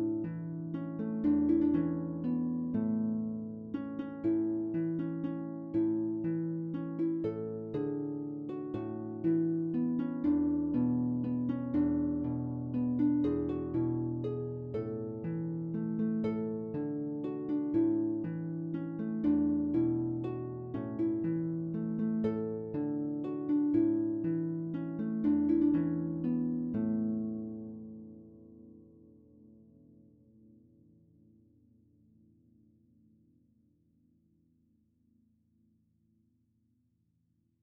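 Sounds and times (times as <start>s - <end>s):
concert harp lullaby: 0.0s - 30.0s.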